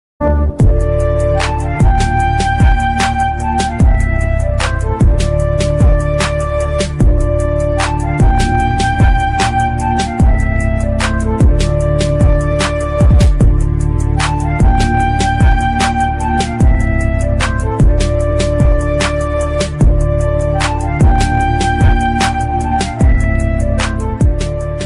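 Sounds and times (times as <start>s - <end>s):
sad Hindi flute mobile phone ringtone: 0.6s - 24.8s.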